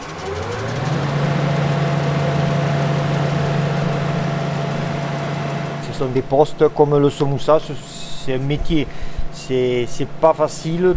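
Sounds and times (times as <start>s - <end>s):
machine sanding a bell: 0.0s - 10.9s
speech: 6.0s - 10.9s.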